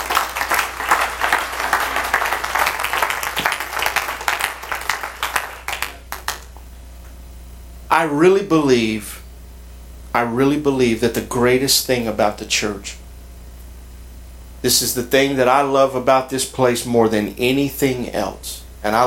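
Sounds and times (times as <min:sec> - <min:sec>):
audience clapping hands in praise: 0:00.0 - 0:06.6
speech: 0:08.0 - 0:09.2, 0:10.1 - 0:13.0, 0:14.6 - 0:19.0.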